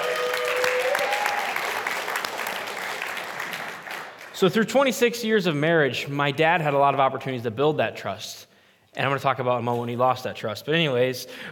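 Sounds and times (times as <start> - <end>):
crowd clapping steadily: 0.0 - 4.7
speech: 4.4 - 11.5.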